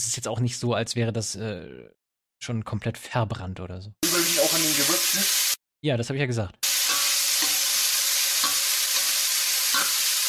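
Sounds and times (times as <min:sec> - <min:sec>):
speech: 0:00.0 - 0:04.0, 0:05.8 - 0:06.7
sausage frying in a pan: 0:04.0 - 0:05.6, 0:06.6 - 0:10.2.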